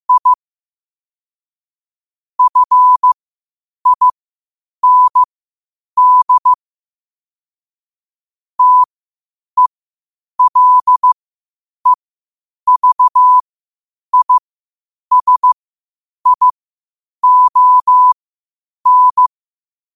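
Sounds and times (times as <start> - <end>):
morse code at 5 wpm: 0.1 - 0.4, 2.4 - 3.2, 3.8 - 4.1, 4.8 - 5.3, 6.0 - 6.6, 8.6 - 8.9, 10.4 - 11.2, 12.7 - 13.4, 14.1 - 14.4, 15.1 - 15.6, 16.3 - 16.5, 17.2 - 18.2, 18.9 - 19.3.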